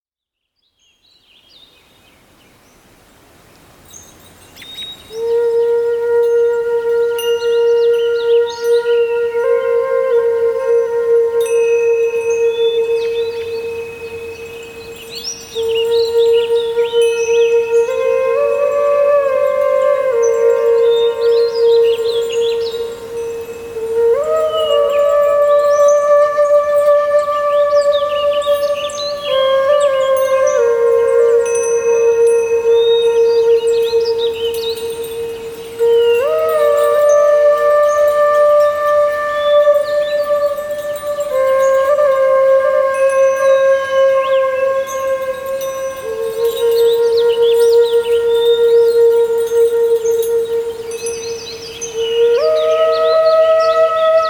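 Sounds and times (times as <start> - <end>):
Asian Zen spa meditation music: 0.8 - 54.2.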